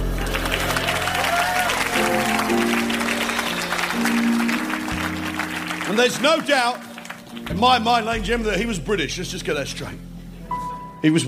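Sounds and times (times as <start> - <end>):
audience applause: 0.0 - 7.6
speech: 6.0 - 10.1, 11.0 - 11.2.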